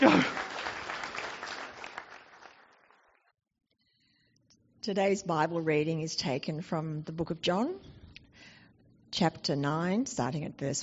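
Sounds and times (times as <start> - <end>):
speech: 0.0 - 0.4, 4.8 - 8.0, 9.1 - 10.8
audience applause: 0.0 - 3.2.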